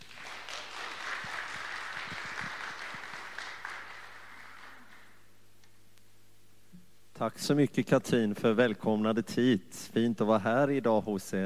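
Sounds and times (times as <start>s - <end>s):
audience applause: 0.0s - 5.2s
speech: 7.2s - 11.4s.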